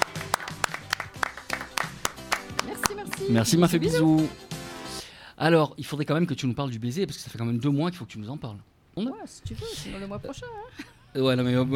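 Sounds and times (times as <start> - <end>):
audience applause: 0.0 - 3.2
speech: 3.2 - 4.5, 5.4 - 11.7.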